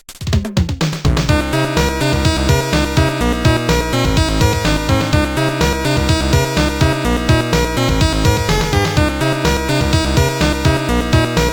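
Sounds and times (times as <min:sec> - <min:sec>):
retrowave music on Amiga: 0:00.3 - 0:11.5.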